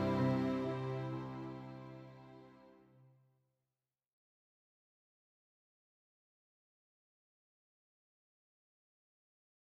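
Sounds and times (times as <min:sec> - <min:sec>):
piano ballad: 0:00.0 - 0:02.0.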